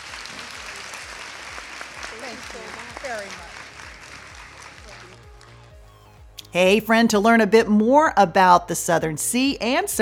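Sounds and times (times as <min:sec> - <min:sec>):
applause: 0:00.0 - 0:05.8
speech: 0:02.3 - 0:03.6, 0:06.5 - 0:10.0.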